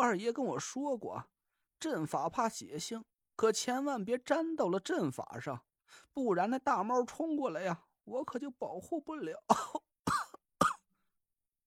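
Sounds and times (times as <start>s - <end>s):
speech: 0.0s - 9.9s
person coughing violently: 9.5s - 10.8s.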